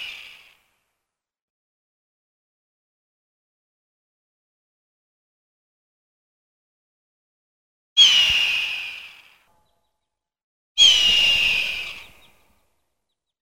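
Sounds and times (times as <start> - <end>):
hawk giving harsh hoarse screams: 8.0 - 9.3, 10.8 - 12.4.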